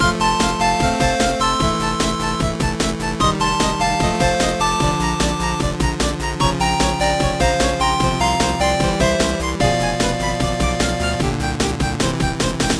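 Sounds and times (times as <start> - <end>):
8-bit game intro music loop: 0.0 - 12.7.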